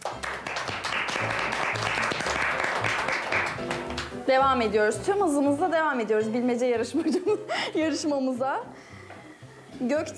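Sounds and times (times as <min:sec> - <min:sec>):
audience applause: 0:00.0 - 0:04.2
speech: 0:04.3 - 0:08.9, 0:09.8 - 0:10.1.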